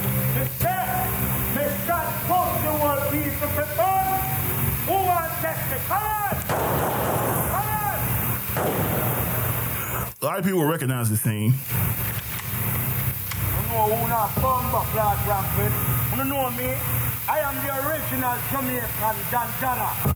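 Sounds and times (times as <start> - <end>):
voices calling out: 0.0 - 20.1
heavy gunfire: 6.4 - 10.2
speech: 10.4 - 12.2, 13.8 - 20.1.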